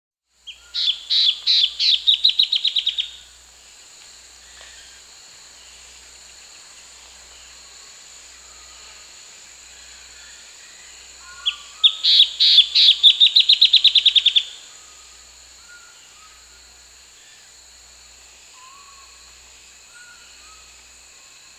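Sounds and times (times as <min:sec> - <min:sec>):
Striated antbird Drymophila devillei song in the Peruvian Amazon: 0:00.4 - 0:03.2, 0:10.2 - 0:16.6.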